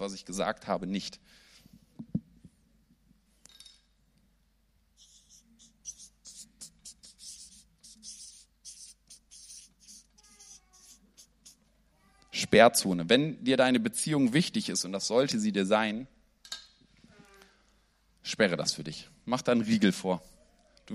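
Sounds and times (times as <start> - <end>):
speech: 0.0 - 1.4, 12.4 - 16.2, 18.3 - 20.3
pen scratching while writing: 5.0 - 11.6.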